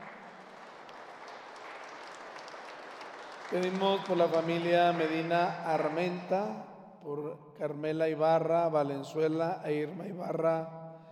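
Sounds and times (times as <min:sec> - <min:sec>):
crowd applause welcoming a community: 0:00.0 - 0:06.3
speech: 0:03.5 - 0:10.8.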